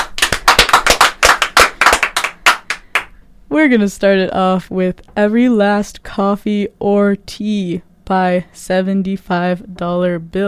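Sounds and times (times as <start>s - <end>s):
applause: 0.0s - 3.1s
speech: 3.5s - 10.4s.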